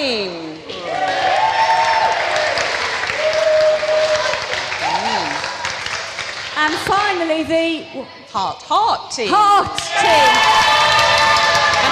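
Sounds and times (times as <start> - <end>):
audience clapping: 0.7 - 7.3, 9.8 - 11.8
speech: 7.4 - 10.7.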